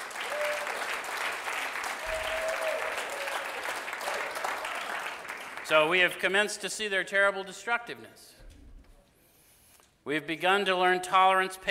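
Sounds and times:
round of applause: 0:00.0 - 0:06.0
speech: 0:05.7 - 0:08.4, 0:10.0 - 0:11.7.

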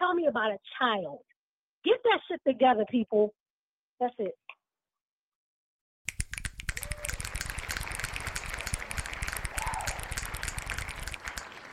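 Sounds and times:
speech: 0:00.3 - 0:03.4, 0:04.0 - 0:04.5
finger snaps: 0:06.1 - 0:11.7
hand claps: 0:06.1 - 0:11.7.

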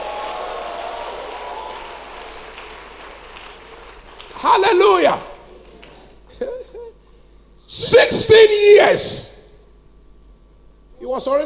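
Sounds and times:
audience clapping: 0:00.0 - 0:06.2
speech: 0:04.4 - 0:05.3, 0:07.8 - 0:09.3, 0:11.1 - 0:11.4.

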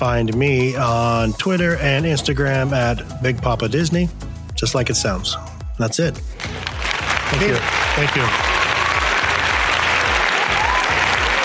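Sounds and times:
speech: 0:00.0 - 0:06.7, 0:07.3 - 0:08.5
long applause: 0:06.4 - 0:11.4.

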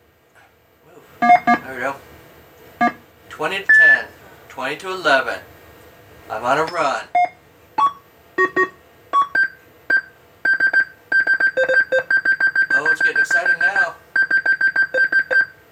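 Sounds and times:
incessant electronic game beeping: 0:01.2 - 0:01.6, 0:03.7 - 0:04.1, 0:07.2 - 0:15.6
speech: 0:03.4 - 0:05.5, 0:06.3 - 0:07.2.

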